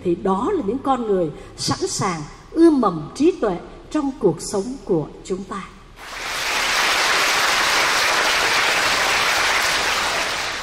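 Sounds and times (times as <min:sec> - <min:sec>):
speech: 0:00.0 - 0:06.2
audience applause: 0:06.0 - 0:10.6.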